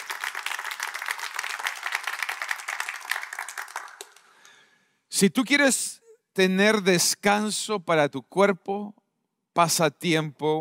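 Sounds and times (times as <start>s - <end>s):
audience applauding: 0.0s - 4.5s
speech: 5.2s - 9.0s, 9.6s - 10.5s.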